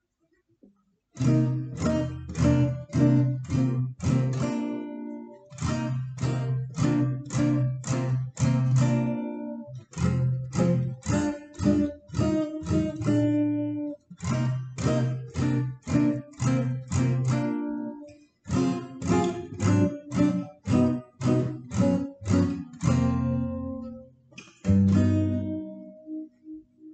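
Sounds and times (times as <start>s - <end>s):
minor blues music: 1.2s - 26.9s.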